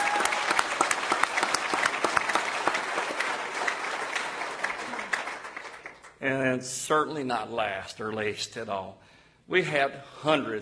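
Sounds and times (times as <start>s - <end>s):
audience round of applause: 0.0s - 6.1s
speech: 6.2s - 10.5s.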